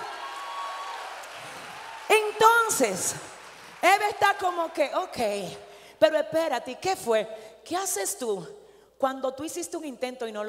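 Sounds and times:
audience applause: 0:00.0 - 0:03.8
speech: 0:02.1 - 0:10.4.

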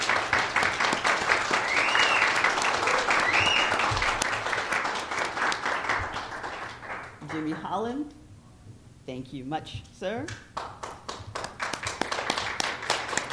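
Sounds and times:
studio audience applause at a live show: 0:00.0 - 0:07.6, 0:10.6 - 0:13.3
speech: 0:07.8 - 0:08.2, 0:09.1 - 0:10.5.

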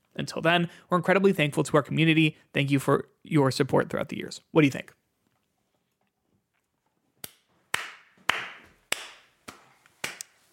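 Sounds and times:
speech: 0:00.2 - 0:05.0
slow clap: 0:07.2 - 0:10.5.

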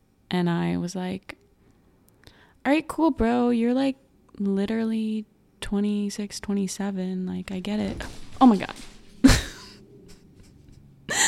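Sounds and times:
speech: 0:00.3 - 0:01.4, 0:02.6 - 0:08.9
dog leaping to chase a mouse in a kitchen: 0:07.6 - 0:09.7.

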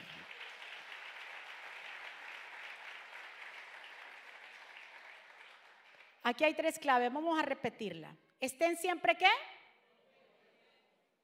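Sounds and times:
loud applause: 0:00.0 - 0:06.2
speech: 0:06.3 - 0:09.5.

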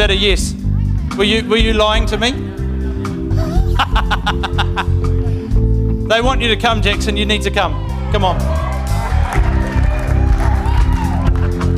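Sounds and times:
speech: 0:00.1 - 0:00.6, 0:01.2 - 0:02.6, 0:04.0 - 0:05.2, 0:06.1 - 0:08.7
laughter: 0:02.2 - 0:05.5
crowd cheering: 0:07.7 - 0:11.7.

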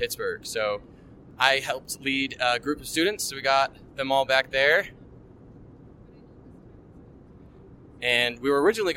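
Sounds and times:
speech: 0:00.0 - 0:05.0, 0:08.0 - 0:08.9
airliner cabin noise in flight at 10,000 feet: 0:00.0 - 0:08.9.

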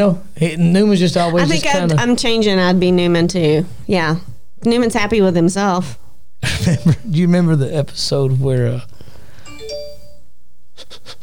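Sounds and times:
speech: 0:00.0 - 0:09.0
home alarm system chime: 0:09.5 - 0:10.3.

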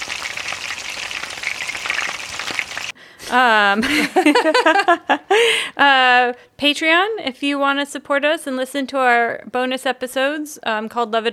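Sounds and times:
bacon sizzling as it fries: 0:00.0 - 0:02.9
speech: 0:03.3 - 0:11.3.

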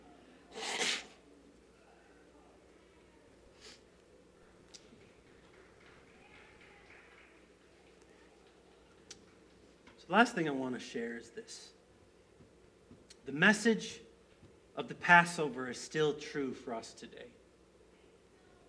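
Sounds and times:
person blowing their nose: 0:00.5 - 0:01.2
speech: 0:10.1 - 0:11.8, 0:13.3 - 0:14.0, 0:14.8 - 0:17.4.

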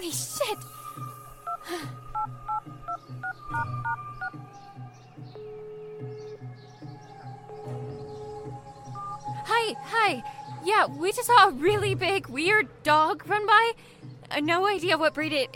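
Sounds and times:
speech: 0:00.0 - 0:00.8, 0:09.7 - 0:15.5
touch-tone beeps: 0:02.2 - 0:04.3.

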